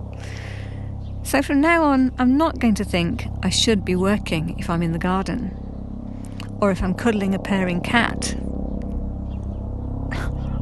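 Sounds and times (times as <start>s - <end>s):
helicopter flying overhead: 0.0s - 10.6s
speech: 1.3s - 5.6s, 6.6s - 8.5s.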